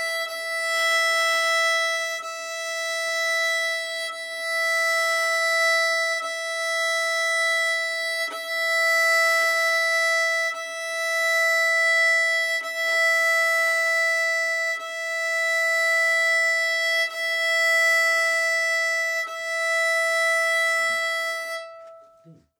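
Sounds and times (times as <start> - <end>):
bowed open modern gut string: 0.0 - 22.5.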